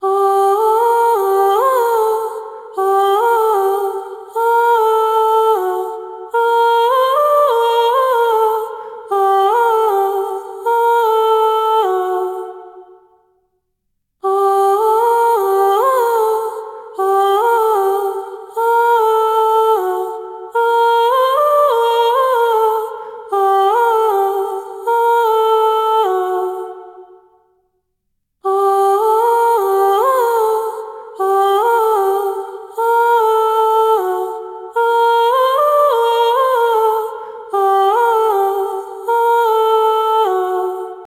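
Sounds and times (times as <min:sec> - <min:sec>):
vocals: 0:00.0 - 0:41.0.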